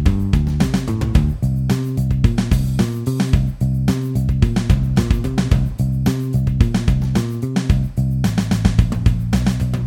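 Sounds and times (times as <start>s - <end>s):
bass: 0.0s - 9.8s
drums: 0.0s - 9.8s.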